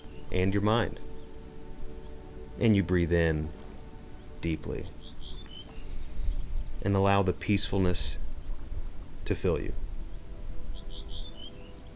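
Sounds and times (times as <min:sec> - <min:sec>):
soft high-pitched bird chirps in trees: 0:00.0 - 0:06.9, 0:09.8 - 0:11.9
speech: 0:00.3 - 0:01.1, 0:02.6 - 0:03.6, 0:04.4 - 0:05.2, 0:06.8 - 0:08.2, 0:09.3 - 0:09.8.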